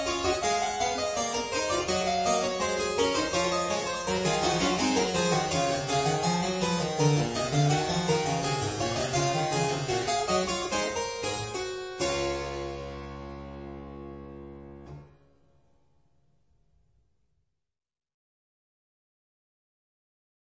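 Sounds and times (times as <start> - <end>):
classical piece in D major: 0.0 - 15.6.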